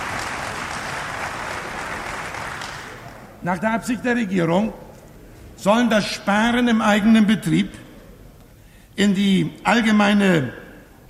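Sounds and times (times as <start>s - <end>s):
applause in parliament: 0.0s - 3.3s
speech: 3.4s - 4.8s, 5.6s - 7.8s, 9.0s - 11.0s.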